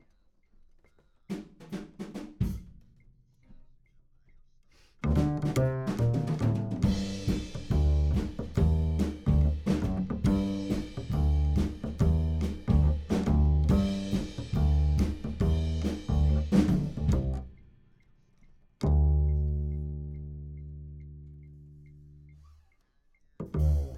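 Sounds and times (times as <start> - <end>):
bass: 5.0 - 17.8, 18.7 - 22.7, 23.4 - 23.9.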